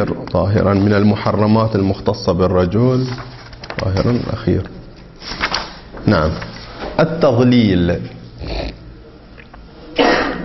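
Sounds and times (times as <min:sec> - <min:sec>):
speech: 0:00.0 - 0:08.6
low noise: 0:00.0 - 0:10.4
sneeze: 0:10.0 - 0:10.4.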